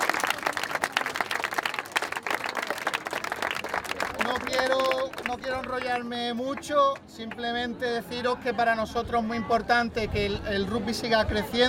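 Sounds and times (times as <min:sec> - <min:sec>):
audience applause: 0:00.0 - 0:06.0
speech: 0:04.5 - 0:11.6.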